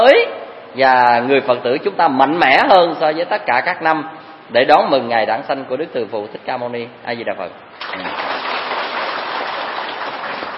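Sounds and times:
speech: 0.2 - 8.3
audience applause at a Buddha's birthday celebration: 8.0 - 10.5.

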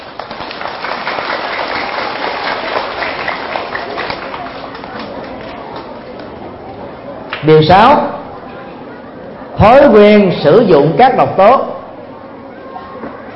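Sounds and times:
loud audience applause: 0.0 - 5.9
speech: 7.4 - 8.2, 9.6 - 11.7.

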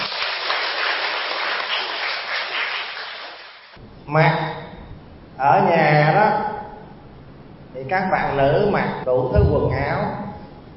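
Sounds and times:
crowd applause: 0.0 - 3.8
speech: 4.1 - 4.6, 5.4 - 6.3, 7.8 - 10.2.

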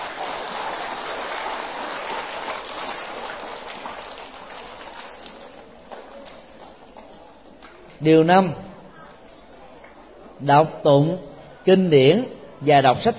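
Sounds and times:
crowd applause: 0.0 - 7.0
speech: 8.0 - 8.6, 10.4 - 13.1.

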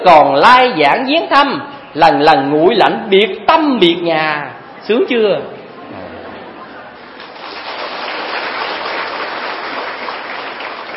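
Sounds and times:
speech: 0.0 - 6.0
audience applause at a Buddhist talk: 7.2 - 10.9.

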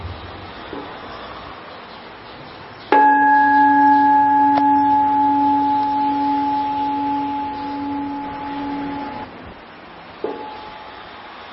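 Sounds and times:
meditation bell ringing: 2.9 - 9.3, 10.3 - 10.9.

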